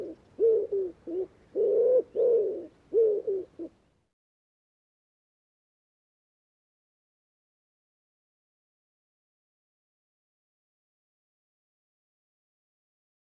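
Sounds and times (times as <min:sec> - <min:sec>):
bird cooing in low notes: 0:00.0 - 0:03.8.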